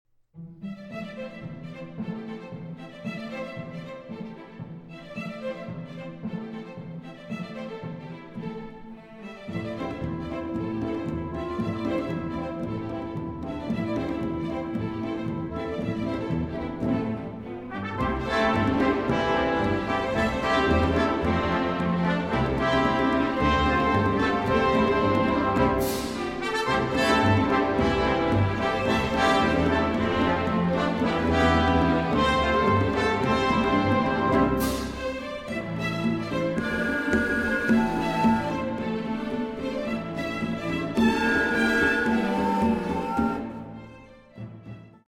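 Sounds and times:
fast symphony movement in E minor: 0.4s - 45.0s.

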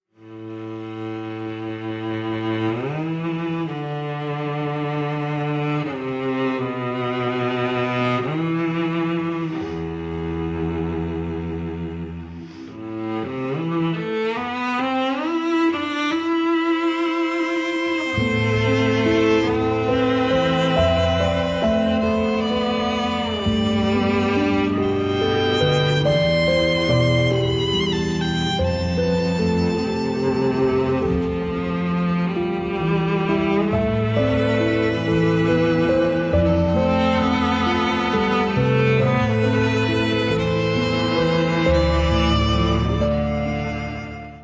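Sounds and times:
piano: 0.0s - 44.4s
strings: 0.1s - 44.4s.

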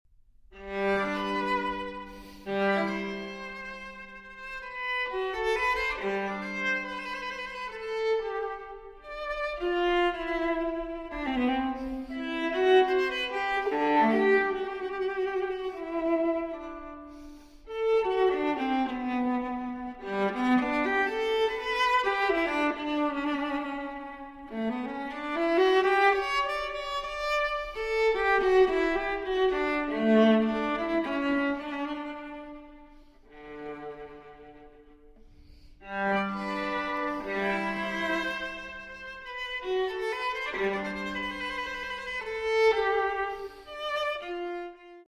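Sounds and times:
viola transcription of a cello suite sarabande: 0.5s - 45.0s.

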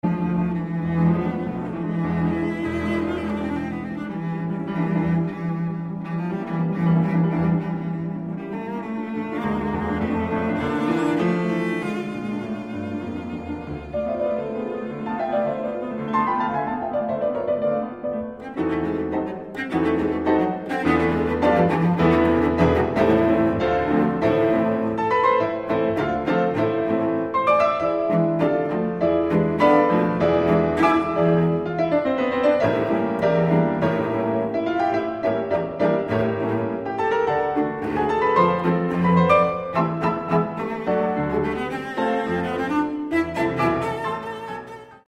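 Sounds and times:
cello sonata in A minor: 0.0s - 45.0s.

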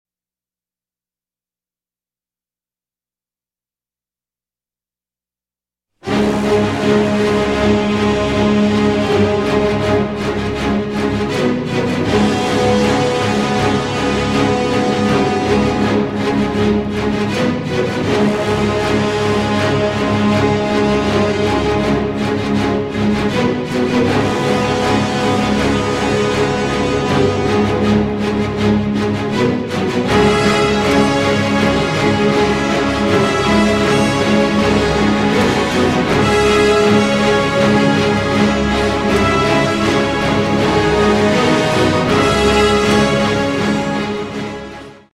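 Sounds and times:
orchestral music: 6.0s - 45.1s.

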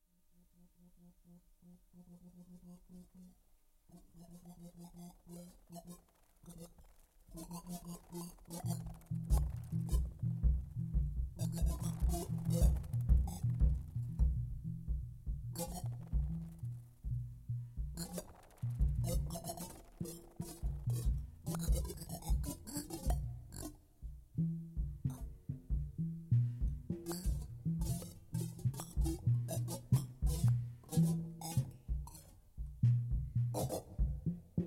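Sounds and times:
two musicians improvising: 7.9s - 34.6s.

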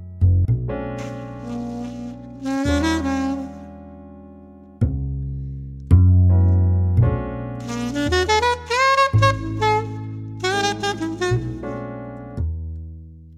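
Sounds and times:
coffee house smooth jazz: 0.2s - 4.1s, 6.4s - 12.4s.

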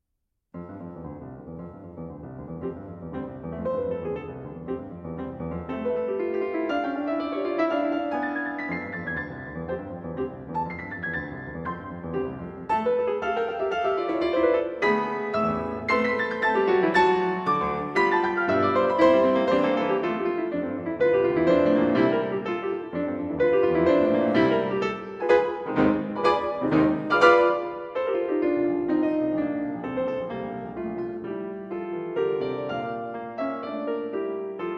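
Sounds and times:
piano scherzo in B-flat major: 0.5s - 34.7s.

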